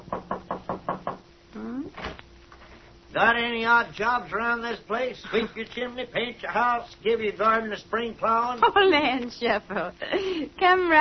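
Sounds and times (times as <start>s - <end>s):
knock on a back door: 0.1s - 1.2s
speech: 3.2s - 10.9s.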